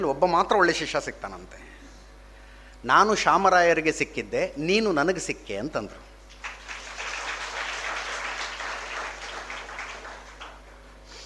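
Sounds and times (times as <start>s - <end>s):
speech: 0.0s - 1.7s, 2.8s - 6.1s
audience applause at a talk: 6.3s - 10.8s.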